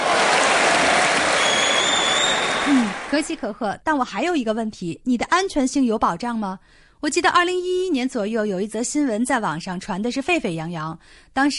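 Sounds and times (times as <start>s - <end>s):
crowd applauding: 0.0s - 3.4s
speech: 3.1s - 11.5s.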